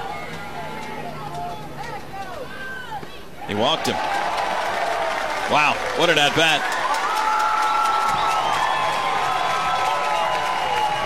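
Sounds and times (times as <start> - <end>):
baseball stadium crowd cheering and whooping: 0.0 - 11.0
speech: 3.5 - 4.2, 5.5 - 6.8
baseball stadium crowd applauding: 3.5 - 11.0.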